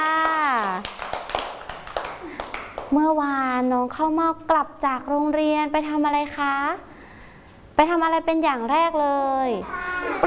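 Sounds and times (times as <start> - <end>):
audience clapping for a young child: 0.0 - 3.0
speech: 2.9 - 6.9, 7.8 - 10.2.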